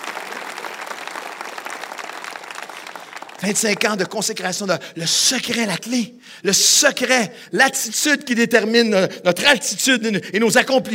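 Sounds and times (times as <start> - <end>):
audience applauding: 0.0 - 4.3
speech: 3.4 - 10.9.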